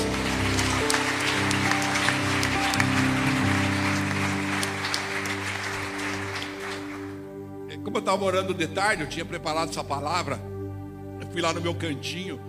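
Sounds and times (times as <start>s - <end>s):
audience applauding: 0.0s - 7.3s
speech: 8.0s - 10.5s, 11.4s - 12.4s.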